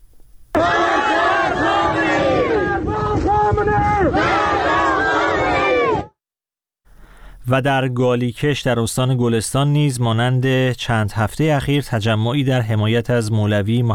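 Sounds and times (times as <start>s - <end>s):
protesters chanting slogans: 0.6s - 6.2s
speech: 7.5s - 13.9s.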